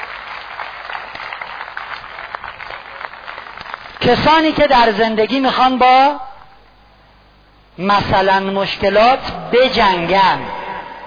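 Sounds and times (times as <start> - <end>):
audience applause: 0.0 - 4.0
speech: 4.0 - 6.2, 7.8 - 10.5.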